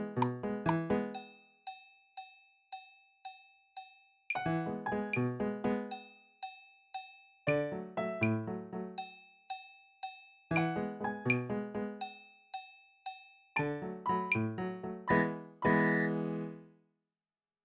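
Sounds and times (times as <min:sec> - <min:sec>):
piano piece: 0:00.0 - 0:01.2, 0:04.4 - 0:05.9, 0:07.5 - 0:09.0, 0:10.5 - 0:12.0, 0:13.6 - 0:16.7.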